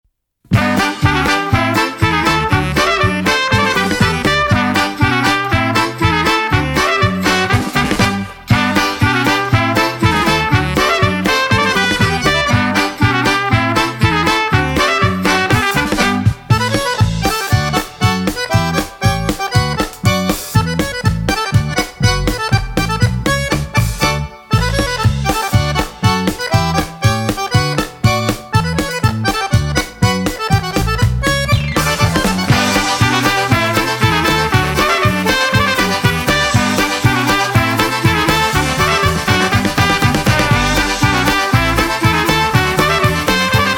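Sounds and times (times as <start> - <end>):
polka music: 0.5 - 43.7.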